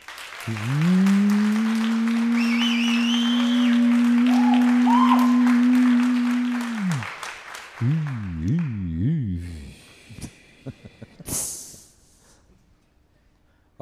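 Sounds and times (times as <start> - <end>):
audience clapping: 0.0 - 9.3
loud sustained droning tone: 0.5 - 7.1.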